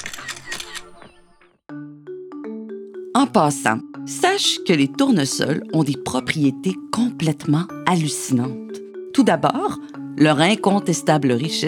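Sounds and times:
camera shutter firing for a selfie: 0.0 - 1.2
speech: 3.2 - 11.6.

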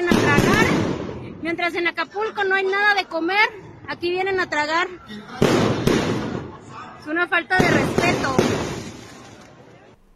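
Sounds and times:
fireworks exploding: 0.0 - 1.3, 5.4 - 6.6, 7.5 - 9.6
murmur of voices: 0.0 - 10.1
speech: 1.4 - 5.7, 7.0 - 8.7.

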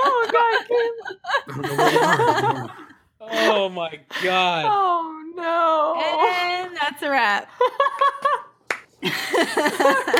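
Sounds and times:
laughter: 0.0 - 3.6, 7.6 - 10.1
speech: 1.0 - 2.8, 3.7 - 6.2, 9.0 - 10.1
hand clapping: 7.9 - 9.0.

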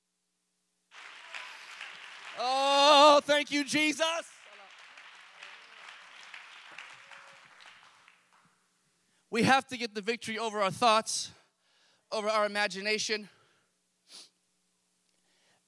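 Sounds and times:
crowd clapping hands: 0.9 - 8.6
loud voice calling out: 2.4 - 4.3
speech: 3.4 - 4.3, 9.4 - 11.4, 12.1 - 13.4.

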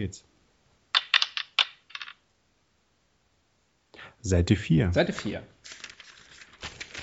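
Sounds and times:
speech: 0.0 - 0.3, 4.0 - 5.8
die being shaken and rolled: 1.0 - 2.2.

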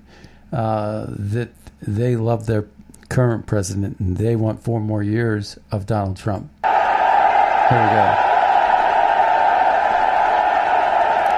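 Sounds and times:
speech: 0.5 - 6.6, 7.7 - 8.3
crowd applauding and cheering as president enters: 6.6 - 11.3.

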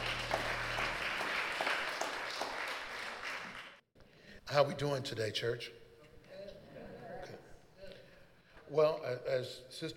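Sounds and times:
audience clapping: 0.0 - 3.8
speech: 4.5 - 5.8, 8.7 - 9.9.

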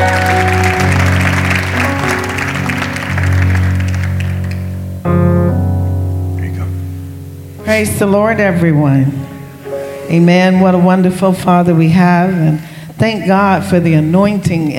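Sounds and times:
audience clapping: 0.0 - 5.0
loud sustained organ-like chords: 0.0 - 14.7
speech: 7.8 - 9.3, 10.1 - 14.7.

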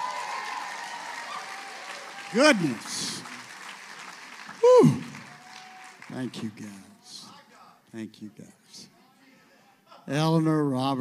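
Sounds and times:
audience clapping: 0.0 - 7.2
speech: 2.3 - 3.3, 6.1 - 7.2, 7.9 - 8.9, 10.1 - 11.0.

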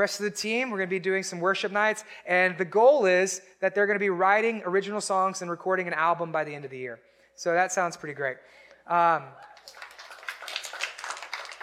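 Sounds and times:
speech: 0.0 - 9.8
round of applause: 9.4 - 11.6.

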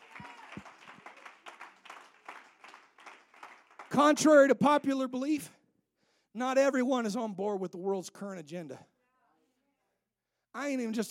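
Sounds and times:
audience clapping hands: 0.0 - 4.4
speech: 4.0 - 5.6, 6.4 - 8.9, 10.6 - 11.0.

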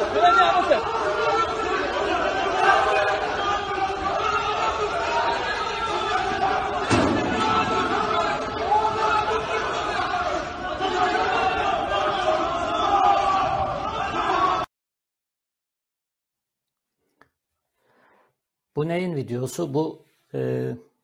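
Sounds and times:
crowd brawl at a construction site: 0.0 - 14.7
speech: 18.8 - 20.9.

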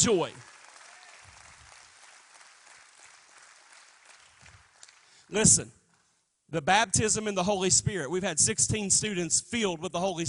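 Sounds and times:
speech: 0.0 - 0.5, 5.3 - 5.8, 6.5 - 10.2
audience clapping hands: 0.0 - 5.3, 5.9 - 6.2.

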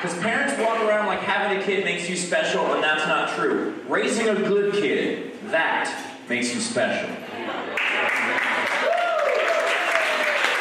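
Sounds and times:
speech: 0.0 - 9.0
crowd applause: 7.6 - 10.5.

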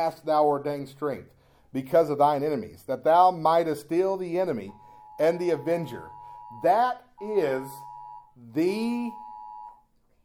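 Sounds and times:
speech: 0.0 - 9.2
phone Amber Alert notification tone: 4.7 - 9.8.

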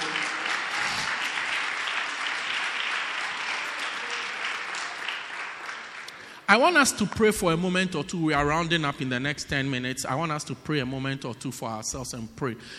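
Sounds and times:
audience clapping and applauding: 0.0 - 6.4
speech: 6.5 - 12.7.

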